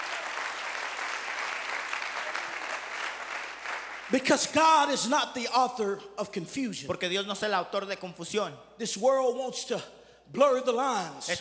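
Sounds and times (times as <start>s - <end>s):
audience clapping: 0.0s - 4.6s
speech: 4.1s - 11.3s.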